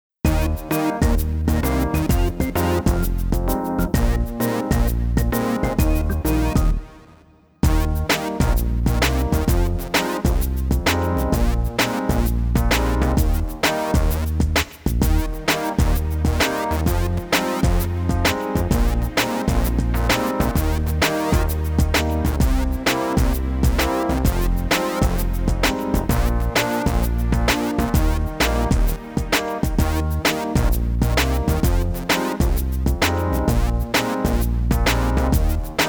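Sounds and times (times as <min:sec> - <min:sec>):
instrumental music: 0:00.3 - 0:35.8.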